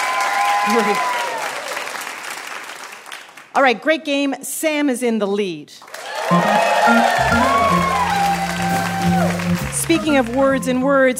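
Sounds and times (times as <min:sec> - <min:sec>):
audience applause: 0:00.0 - 0:03.4, 0:05.9 - 0:10.7
speech: 0:00.7 - 0:01.2, 0:03.6 - 0:08.0, 0:09.8 - 0:11.1.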